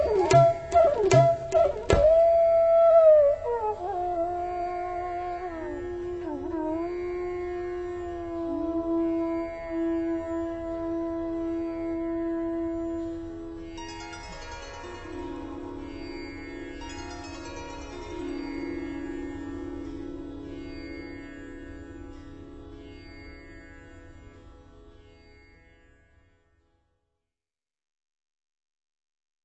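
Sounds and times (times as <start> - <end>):
bansuri bamboo flute: 0.0 - 16.1.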